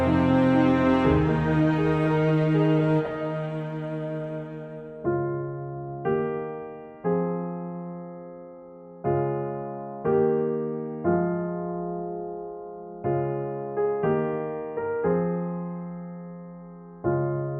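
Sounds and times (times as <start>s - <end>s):
strings: 0.0s - 5.1s
piano: 0.0s - 17.5s.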